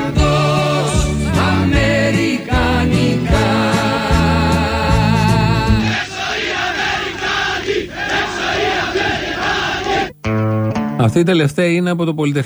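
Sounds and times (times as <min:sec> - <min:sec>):
protest crowd chanting slogans: 0:00.0 - 0:10.1
speech: 0:11.0 - 0:12.4.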